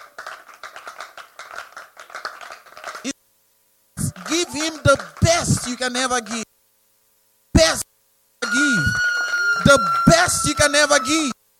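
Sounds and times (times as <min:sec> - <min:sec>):
audience clapping: 0:00.0 - 0:03.1, 0:04.0 - 0:06.4, 0:08.5 - 0:11.0
speech: 0:04.3 - 0:06.4, 0:10.7 - 0:11.4.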